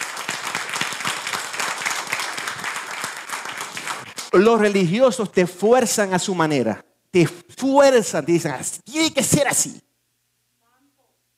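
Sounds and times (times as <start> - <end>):
audience applauding: 0.0 - 4.7
speech: 4.3 - 9.9.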